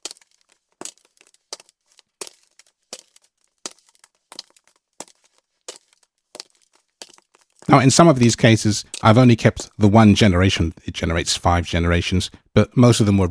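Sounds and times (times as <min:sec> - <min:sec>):
woman's high heels walking over glass balls: 0:00.0 - 0:10.2
speech: 0:07.7 - 0:13.2.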